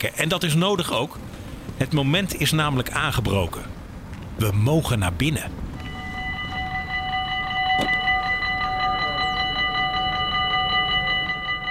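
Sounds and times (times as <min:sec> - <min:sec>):
speech: 0:00.0 - 0:03.8, 0:04.4 - 0:05.6
railway level crossing: 0:05.7 - 0:11.6.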